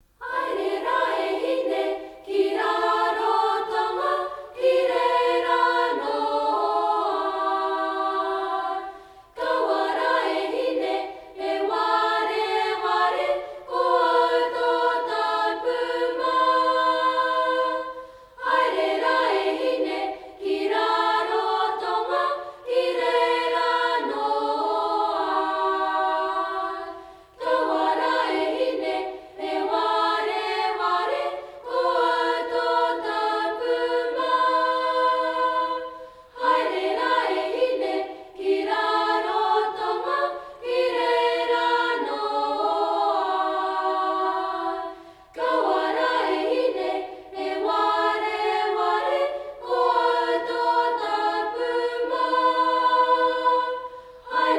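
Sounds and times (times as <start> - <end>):
people singing an action song: 0.2 - 54.5.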